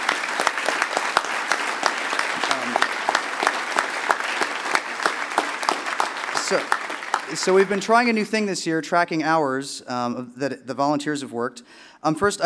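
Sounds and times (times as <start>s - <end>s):
audience applause for volunteers: 0.0s - 8.4s
speech: 6.5s - 12.4s.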